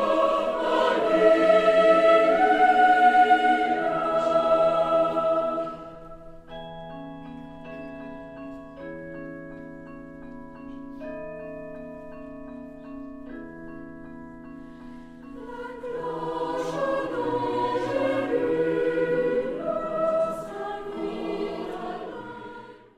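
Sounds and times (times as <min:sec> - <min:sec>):
choir singing: 0:00.0 - 0:06.5, 0:15.3 - 0:22.9.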